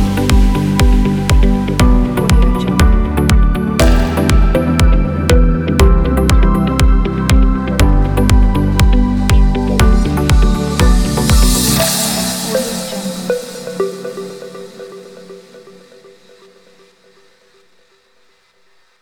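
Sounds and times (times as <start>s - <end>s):
inspirational corporate guitar music: 0.0s - 12.7s.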